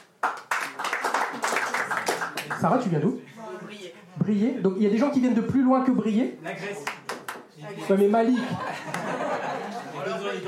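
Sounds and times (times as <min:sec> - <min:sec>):
crowd applauding: 0:00.0 - 0:02.7
speech: 0:02.6 - 0:07.0, 0:07.6 - 0:10.4
laughter: 0:08.0 - 0:10.4.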